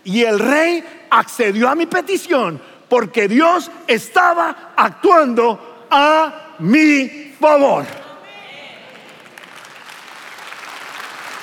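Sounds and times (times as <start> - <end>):
speech: 0.0 - 8.0
audience applauding: 8.9 - 11.4.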